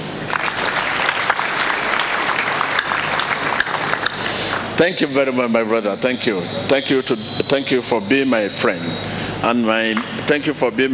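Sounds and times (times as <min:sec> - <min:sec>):
audience applause: 0:00.0 - 0:04.8
speech: 0:04.8 - 0:10.9.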